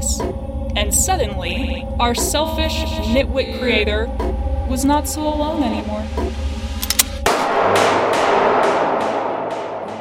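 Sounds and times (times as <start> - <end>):
speech: 0.2 - 6.4
gunshot: 6.8 - 9.9.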